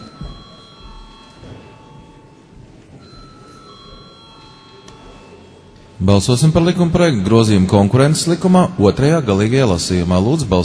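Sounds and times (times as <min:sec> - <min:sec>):
parliament chamber electric bell ringing before a vote: 0:00.0 - 0:06.8
murmur of voices: 0:00.0 - 0:10.6
speech: 0:06.0 - 0:10.6.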